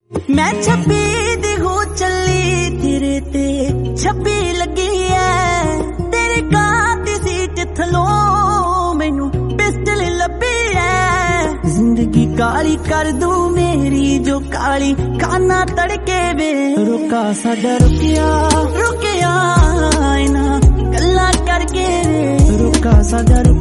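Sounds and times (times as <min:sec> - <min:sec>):
Punjabi song: 0:00.1 - 0:23.6.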